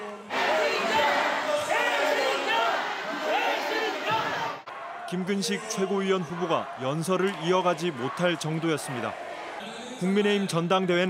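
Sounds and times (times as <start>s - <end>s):
crowd chanting at political rally: 0.0s - 10.1s
speech: 5.1s - 9.2s, 10.0s - 11.0s.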